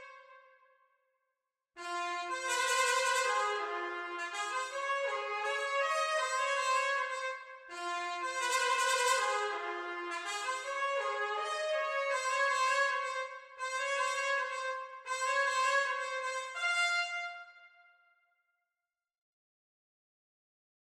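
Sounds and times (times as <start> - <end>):
B-flat trumpet playing: 1.9 - 17.9.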